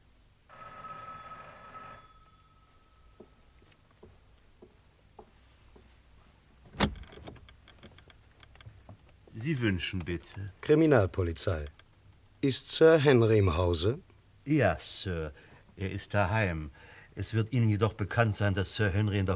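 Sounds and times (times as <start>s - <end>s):
doorbell ringing: 0.5s - 3.5s
speech: 9.4s - 11.8s, 12.4s - 19.3s.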